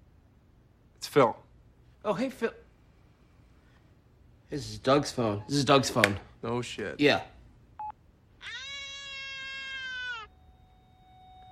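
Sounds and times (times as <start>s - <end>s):
speech: 1.2s - 1.4s, 2.0s - 2.6s, 4.5s - 7.3s
baby crying: 8.4s - 10.3s.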